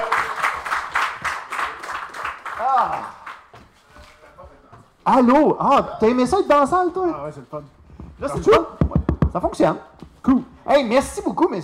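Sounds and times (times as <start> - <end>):
audience applause: 0.0 - 3.5
speech: 2.6 - 3.2, 5.0 - 11.6.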